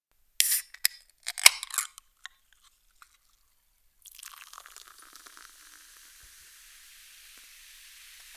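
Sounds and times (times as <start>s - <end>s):
soda can opening and sparkling: 0.4s - 3.4s, 4.0s - 7.6s.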